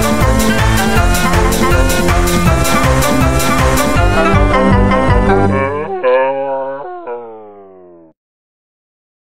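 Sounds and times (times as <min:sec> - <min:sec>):
techno remix music: 0:00.0 - 0:06.1.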